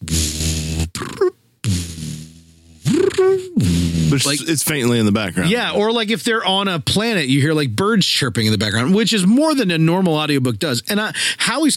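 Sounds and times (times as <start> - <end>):
person imitating a low droning spaceship engine hum with their voice: 0.0 - 4.3
speech: 3.4 - 11.7.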